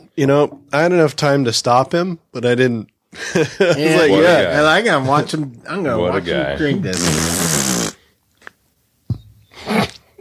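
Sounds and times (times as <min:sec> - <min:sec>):
speech: 0:00.2 - 0:07.4
wet buzzy raspberries imitating fart noises: 0:06.9 - 0:08.1, 0:09.6 - 0:10.2.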